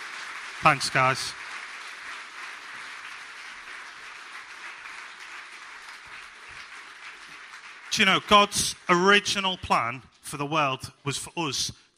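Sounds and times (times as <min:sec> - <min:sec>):
sustained applause from a sizable crowd for the band: 0:00.0 - 0:09.2
speech: 0:00.6 - 0:01.4, 0:08.0 - 0:11.8.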